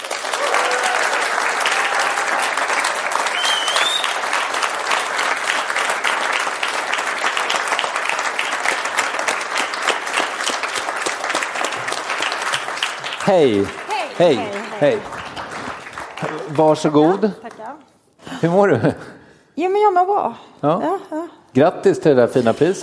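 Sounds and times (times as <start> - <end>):
audience applause: 0.0 - 17.7
speech: 13.3 - 15.2, 16.3 - 17.4, 18.4 - 22.8.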